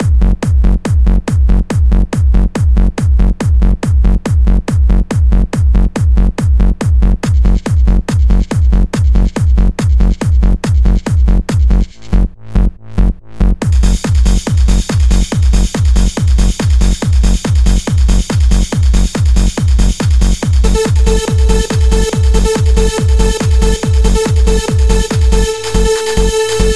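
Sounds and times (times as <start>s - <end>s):
beat: 0.0s - 26.7s.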